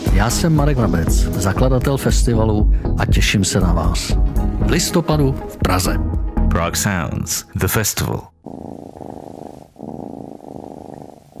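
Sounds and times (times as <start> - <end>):
speech: 0.2 - 8.4
cat purring: 8.4 - 11.3.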